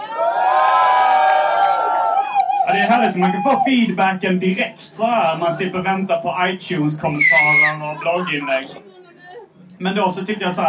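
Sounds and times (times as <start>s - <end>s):
live audience cheering: 0.0s - 3.8s
speech: 2.9s - 8.9s, 9.8s - 10.6s.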